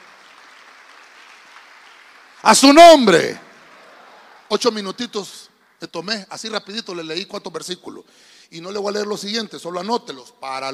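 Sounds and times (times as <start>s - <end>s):
audience clapping loudly: 0.0s - 6.6s
speech: 2.4s - 3.4s, 4.5s - 10.7s.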